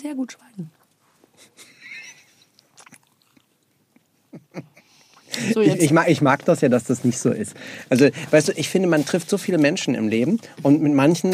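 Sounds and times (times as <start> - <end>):
speech: 0.0 - 0.8, 5.4 - 11.3
someone biting into and chewing a waffle: 2.6 - 3.8.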